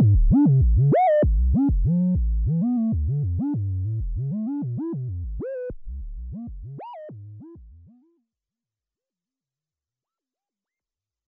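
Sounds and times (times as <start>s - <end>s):
analog synth sample and hold sine with portamento: 0.0s - 8.0s.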